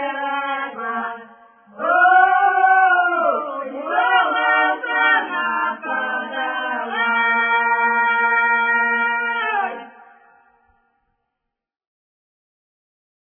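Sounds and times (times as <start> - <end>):
people singing a lyrical folk song in Yermolovo, Kasimov district: 0.0 - 10.4.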